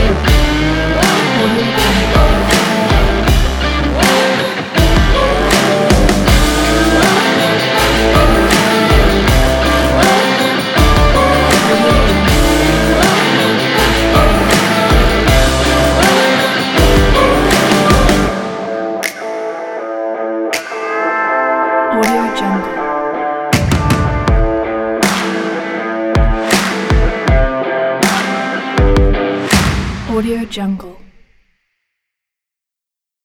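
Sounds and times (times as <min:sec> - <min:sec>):
western country rock music: 0:00.0 - 0:29.7.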